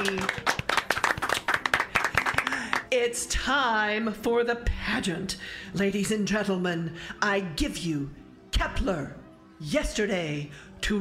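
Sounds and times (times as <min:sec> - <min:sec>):
round of applause: 0:00.0 - 0:02.9
speech: 0:03.0 - 0:10.9.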